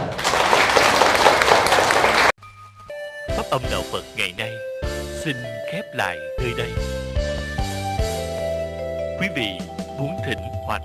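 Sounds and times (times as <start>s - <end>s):
crowd applauding: 0.0s - 2.4s
sustained musical notes: 2.6s - 10.8s
speech: 3.5s - 7.0s, 9.2s - 10.8s.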